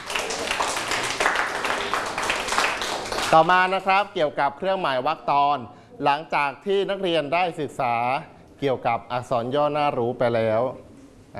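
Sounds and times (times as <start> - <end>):
applause: 0.0 - 3.9
speech: 3.3 - 11.3.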